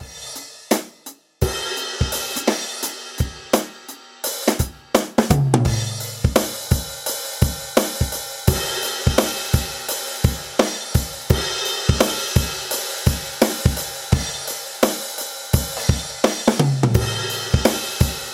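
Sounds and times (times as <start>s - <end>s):
drum: 0.0s - 18.3s.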